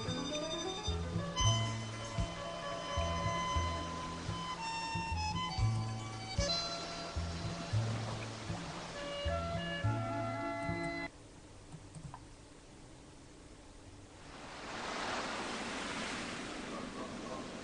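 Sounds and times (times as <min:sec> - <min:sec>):
brief musical passage: 0:00.0 - 0:11.1
ocean surf: 0:01.9 - 0:10.4, 0:14.2 - 0:17.6.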